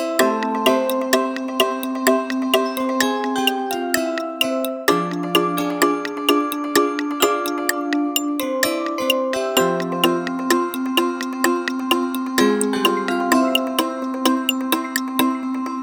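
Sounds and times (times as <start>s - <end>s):
pendulum ticking: 0.2s - 15.7s.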